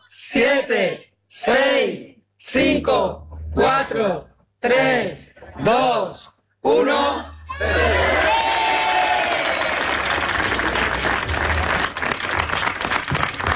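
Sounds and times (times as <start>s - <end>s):
speech: 0.2s - 8.3s
crowd ovation at fair lighting ceremony: 7.5s - 13.5s.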